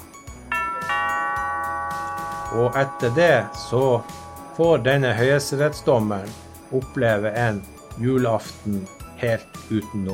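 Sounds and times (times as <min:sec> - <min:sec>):
doorbell ringing: 0:00.4 - 0:08.0
speech: 0:02.5 - 0:10.1.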